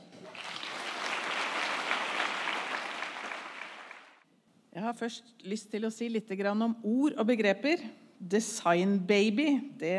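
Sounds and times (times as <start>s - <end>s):
audience applause: 0.0s - 4.2s
speech: 4.9s - 9.9s.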